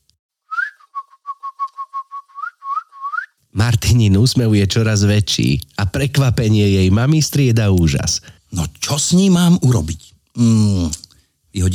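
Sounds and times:
person imitating a bird's peeping with whistled chirps: 0.5 - 3.4
speech: 3.6 - 11.0, 11.6 - 11.7.

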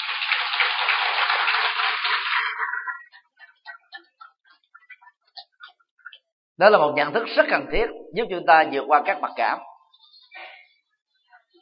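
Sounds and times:
crowd applause: 0.0 - 3.2
speech: 0.3 - 2.9, 6.6 - 9.7.

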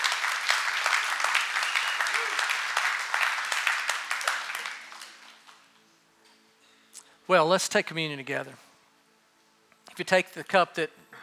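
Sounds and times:
audience clapping: 0.0 - 5.8
speech: 7.3 - 8.6, 10.0 - 11.0.

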